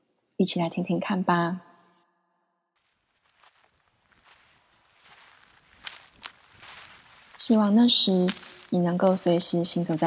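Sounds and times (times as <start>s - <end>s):
speech: 0.4s - 1.7s, 7.5s - 10.0s
two people's footsteps on fallen leaves in a pine forest on Tenerife: 2.8s - 10.0s.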